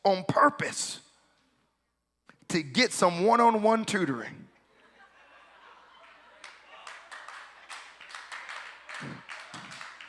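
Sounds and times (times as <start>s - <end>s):
speech: 0.0s - 1.0s, 2.5s - 4.5s
laughter: 4.6s - 10.0s
men clapping their hands: 6.0s - 10.0s.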